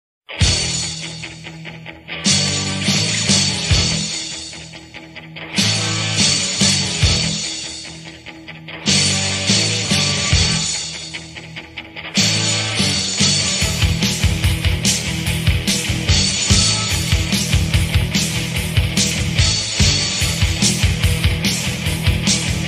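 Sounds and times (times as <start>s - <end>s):
theme song: 2.2s - 4.6s, 5.5s - 8.0s, 8.8s - 11.4s, 12.1s - 22.6s.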